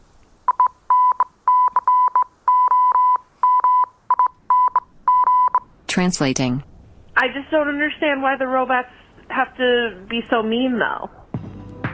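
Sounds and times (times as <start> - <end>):
incoming transmission electronic beeps: 0.5 - 5.7
speech: 6.0 - 11.2.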